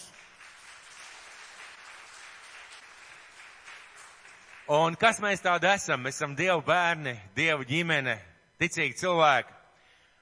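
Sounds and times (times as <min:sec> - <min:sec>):
large crowd applause: 0:00.0 - 0:05.3
speech: 0:04.7 - 0:09.6.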